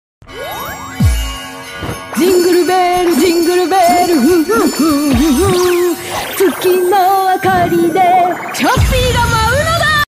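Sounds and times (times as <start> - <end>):
jingle: 0.3 - 9.7.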